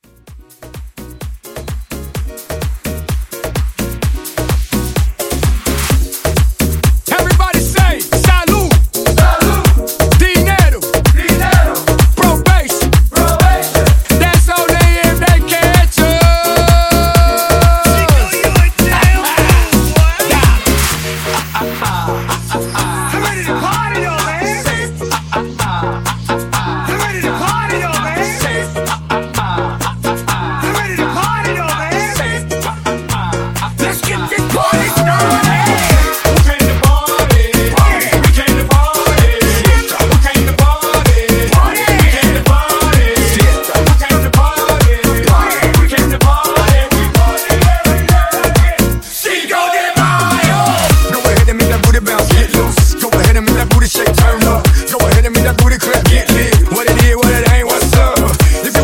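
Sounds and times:
Latin merengue music: 0.0 - 58.8.

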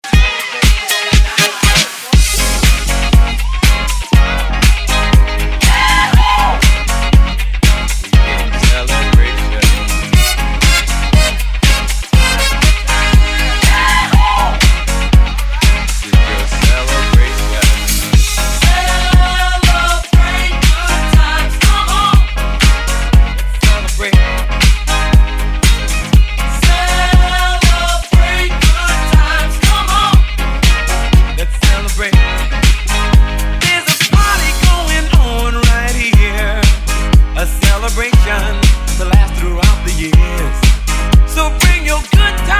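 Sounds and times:
classic 80s drum machine beat: 0.0 - 42.5.

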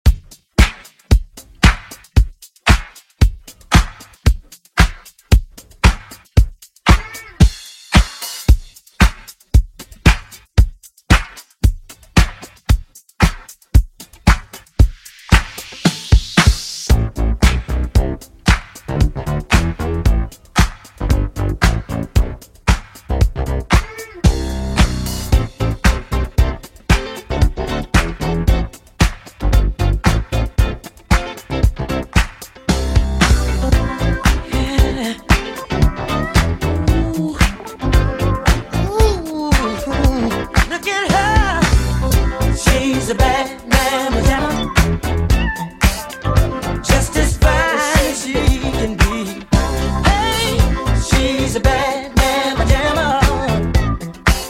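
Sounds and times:
funk music at 114 bpm: 0.0 - 54.4.

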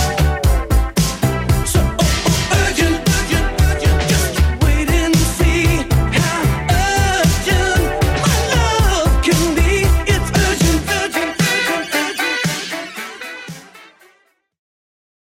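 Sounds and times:
80s drum beat at 115 bpm: 0.0 - 13.8.

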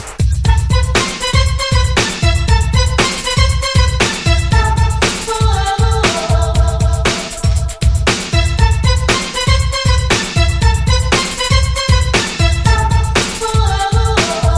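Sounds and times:
1980s dance pop: 0.2 - 14.5.

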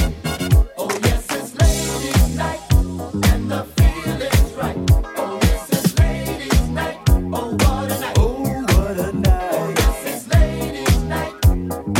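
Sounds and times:
1970s style drum loop: 0.0 - 11.9.

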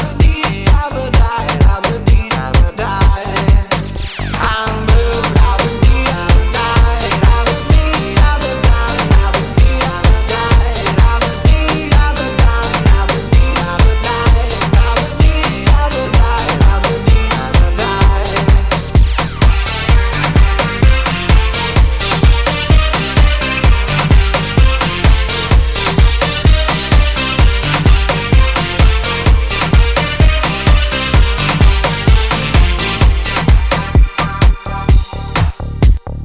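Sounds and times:
Afrobeat drum: 0.0 - 36.1.

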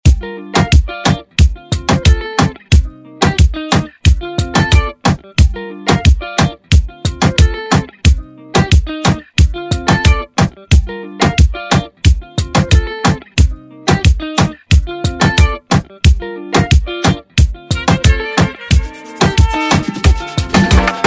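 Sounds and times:
Afro music: 0.0 - 21.0.

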